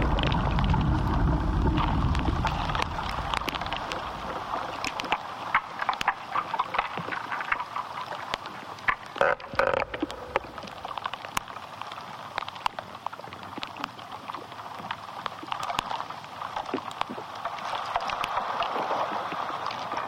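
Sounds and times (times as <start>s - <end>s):
low rumble: 0.0s - 5.1s, 9.7s - 11.2s
crackling clicks and ticks inside an ash tree: 0.0s - 20.0s.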